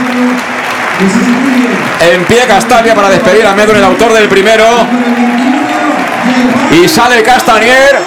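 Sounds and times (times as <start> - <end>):
stadium crowd ovation: 0.0 - 8.0
speech: 1.0 - 5.4, 6.4 - 8.0.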